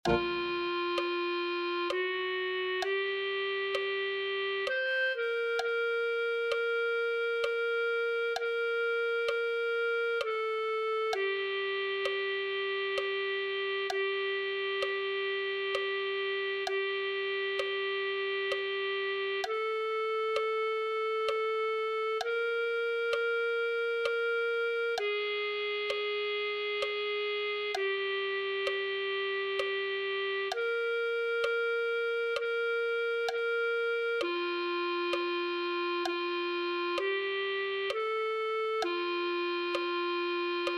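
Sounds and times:
clarinet: 0.0s - 40.7s.

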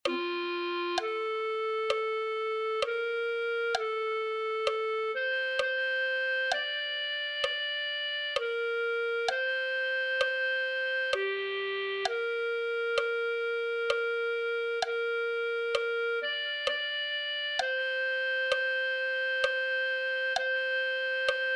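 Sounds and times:
clarinet: 0.0s - 21.5s.

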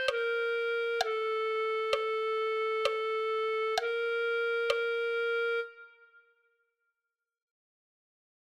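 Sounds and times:
clarinet: 0.0s - 6.3s.

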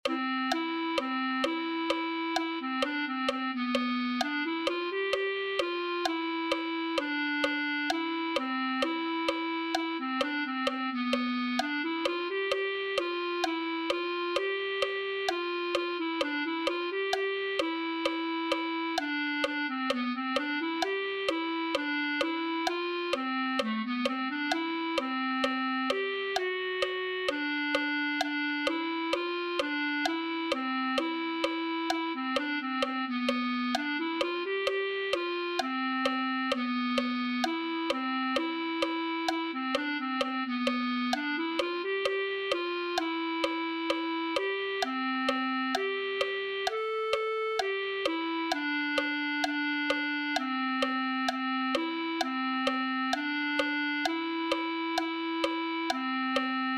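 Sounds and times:
clarinet: 0.0s - 56.7s.

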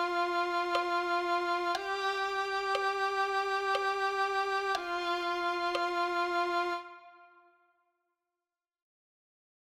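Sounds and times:
violin playing a hymn: 0.0s - 7.6s.

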